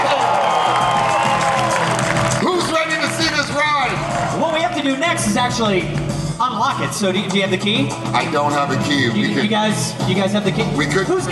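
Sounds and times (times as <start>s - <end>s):
crowd applause and cheering at grand opening: 0.0s - 6.3s
speech: 4.9s - 11.2s.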